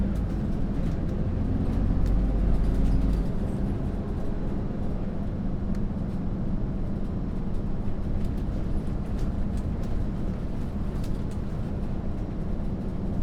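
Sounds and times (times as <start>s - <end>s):
bus ride heard from inside the bus: 0.0s - 13.2s.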